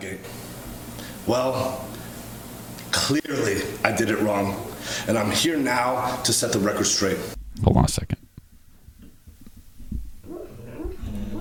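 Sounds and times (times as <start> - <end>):
speech: 1.3 - 1.9, 3.1 - 8.2
dog whimpering while dreaming: 10.2 - 11.3.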